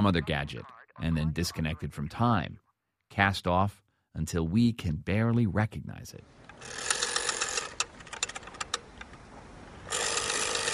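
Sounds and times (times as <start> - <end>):
speech: 0.0 - 6.9
rotary phone dial being turned: 6.5 - 9.2, 9.9 - 10.7.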